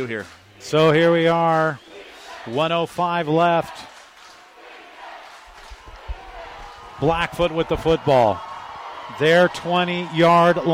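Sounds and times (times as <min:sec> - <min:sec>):
speech: 0:00.0 - 0:03.9, 0:07.0 - 0:08.5, 0:09.1 - 0:10.7
football stadium crowd cheering on its feet: 0:00.0 - 0:10.7
low thumps: 0:05.5 - 0:06.8.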